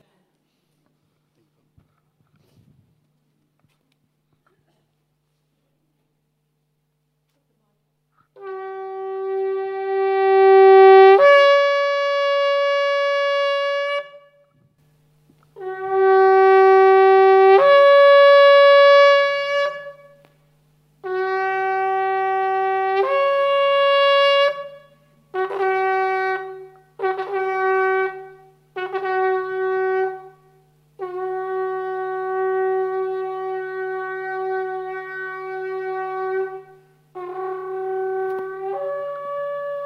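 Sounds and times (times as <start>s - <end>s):
shofar Jewish ram's horn blasts: 8.4s - 14.8s, 15.6s - 20.4s, 21.0s - 39.8s.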